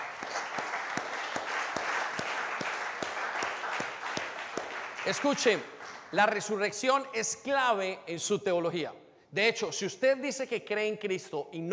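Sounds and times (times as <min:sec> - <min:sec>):
audience applause: 0:00.0 - 0:06.1
speech: 0:05.0 - 0:11.7.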